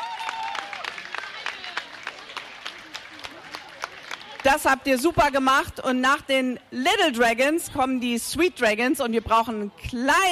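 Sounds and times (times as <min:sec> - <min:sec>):
audience applause: 0:00.0 - 0:04.6
speech: 0:04.4 - 0:10.3.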